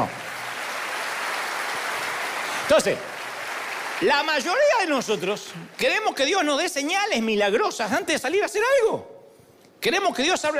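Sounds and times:
audience applause: 0:00.0 - 0:05.8
speech: 0:02.7 - 0:03.1, 0:04.0 - 0:09.1, 0:09.8 - 0:10.5.

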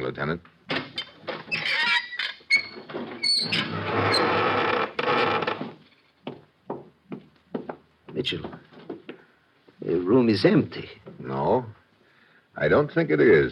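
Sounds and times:
speech: 0:00.1 - 0:00.6, 0:03.4 - 0:04.3, 0:08.2 - 0:08.7, 0:09.9 - 0:11.7, 0:12.6 - 0:13.5
wooden door creaking open: 0:00.7 - 0:05.9.

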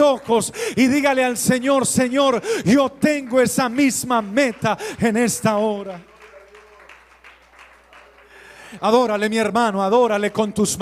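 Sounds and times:
audience applauding: 0:00.0 - 0:09.3
speech: 0:00.1 - 0:06.1, 0:08.7 - 0:10.7.

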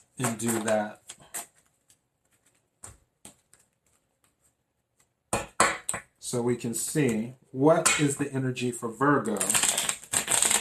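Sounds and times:
speech: 0:00.2 - 0:01.1, 0:06.3 - 0:09.6
tarot cards being shuffled: 0:00.2 - 0:04.4, 0:09.3 - 0:10.5.

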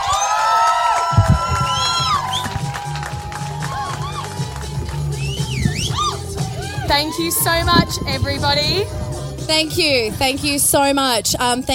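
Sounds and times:
audience applause: 0:00.0 - 0:06.8
audience cheering: 0:00.0 - 0:09.3
speech: 0:07.0 - 0:11.7.

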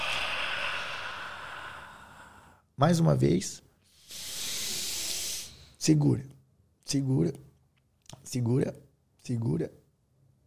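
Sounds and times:
deep exhale after a held breath in a mindfulness breathing exercise: 0:00.0 - 0:02.7, 0:03.9 - 0:05.8
speech: 0:02.8 - 0:04.2, 0:05.8 - 0:07.5, 0:08.2 - 0:09.8.

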